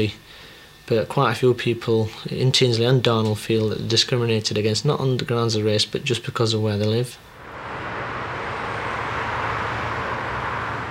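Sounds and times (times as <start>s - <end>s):
speech: 0.0s - 7.3s
heavy motorway traffic of cars and trucks: 7.3s - 10.8s.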